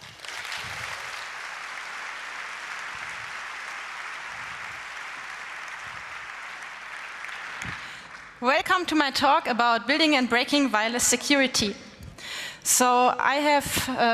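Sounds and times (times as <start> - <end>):
audience applause welcoming a conference speaker: 0.0 - 8.4
speech: 8.4 - 11.8, 12.6 - 14.1.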